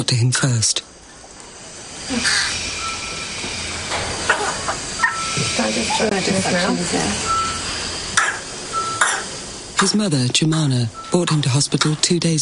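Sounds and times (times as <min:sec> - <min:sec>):
speech: 0:00.0 - 0:01.0, 0:02.1 - 0:02.6, 0:05.6 - 0:07.4, 0:09.8 - 0:12.4
steady room hum: 0:00.0 - 0:12.4
faint electronic beeps: 0:02.3 - 0:03.9, 0:05.0 - 0:06.6, 0:07.2 - 0:07.8, 0:08.7 - 0:09.1, 0:10.9 - 0:11.4
baby coughing: 0:08.2 - 0:09.3.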